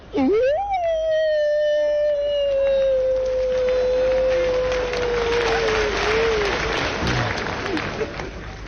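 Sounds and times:
voice imitating a wolf howl: 0.2 - 6.7
crowd noise: 1.6 - 8.6
applause: 2.4 - 8.6.

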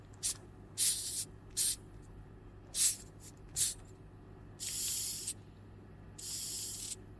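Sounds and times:
low hum: 0.0 - 7.1
Madagascar hissing cockroach hissing: 0.2 - 1.8, 2.8 - 3.0, 4.6 - 5.4, 6.2 - 7.0.

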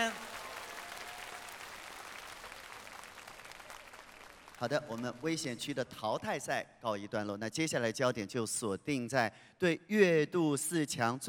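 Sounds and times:
audience applause: 0.0 - 5.2
speech: 4.6 - 11.2.

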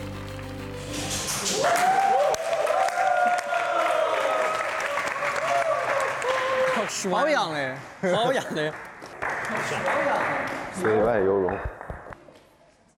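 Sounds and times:
audience applause: 1.6 - 7.3, 8.3 - 12.0
speech: 7.0 - 8.9, 9.5 - 11.7.

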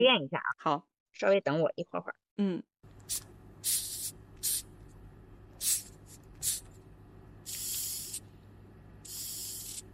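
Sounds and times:
speech: 0.0 - 3.9
hum: 2.8 - 9.9
hissing cockroach hissing: 3.1 - 4.7, 5.6 - 6.7, 7.4 - 8.2, 9.0 - 9.9.

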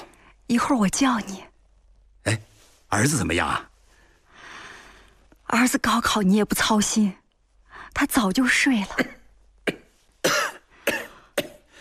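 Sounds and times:
speech: 0.5 - 1.5, 2.2 - 3.7, 5.5 - 7.2, 7.9 - 9.8
person with a lung nodule coughing: 9.0 - 11.7.

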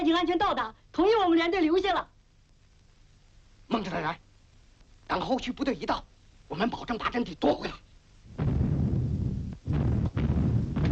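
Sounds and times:
speech: 0.0 - 2.1, 3.7 - 4.2, 5.1 - 7.8
enemy artillery shelling pounding Wusheng Mountain in a Chinese war radio drama: 8.3 - 10.9.

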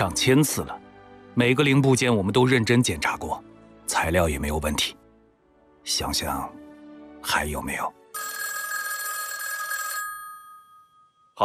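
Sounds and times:
speech: 0.0 - 0.8, 1.4 - 5.0, 5.8 - 6.6, 7.2 - 8.3
telephone ringing: 8.2 - 11.4.

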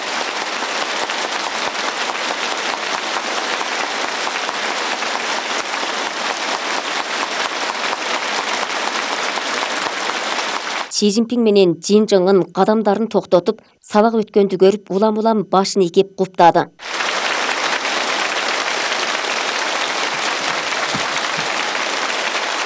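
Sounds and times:
teachers and students applauding at a school: 0.0 - 10.9, 16.8 - 22.6
speech: 11.0 - 16.9.

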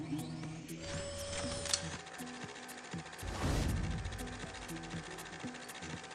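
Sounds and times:
automated library book-transport cart motor hum on its rail: 0.0 - 6.1
rising mechanical whir: 0.0 - 6.1
whooshing rush: 3.2 - 4.9.

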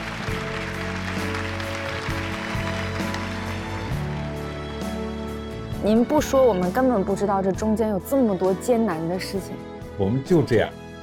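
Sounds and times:
audience applause: 0.0 - 4.9
speech: 5.8 - 10.8.

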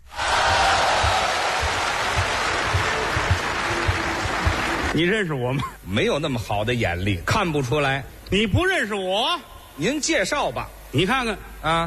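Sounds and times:
audience applause: 0.0 - 5.0
speech: 5.0 - 11.8.

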